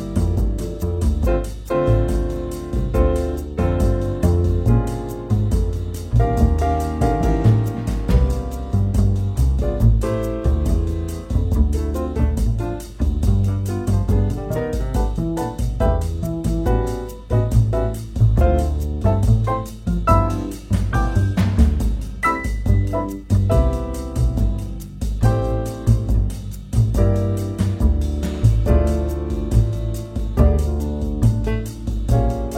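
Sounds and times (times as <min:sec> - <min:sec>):
background music: 0:00.0 - 0:32.5.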